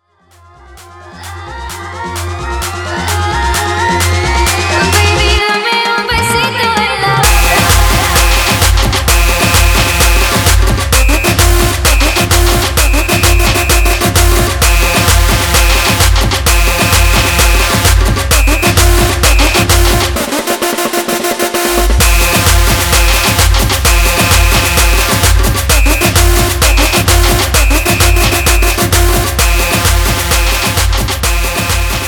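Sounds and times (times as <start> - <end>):
tribal remix music at 130 bpm: 0.0 - 32.0.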